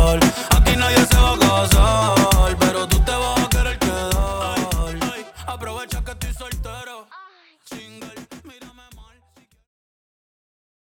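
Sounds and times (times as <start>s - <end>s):
music intro at 100 BPM: 0.0s - 6.8s.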